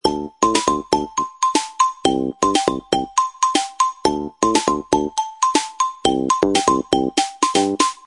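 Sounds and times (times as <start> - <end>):
pop ringtone: 0.0 - 8.0.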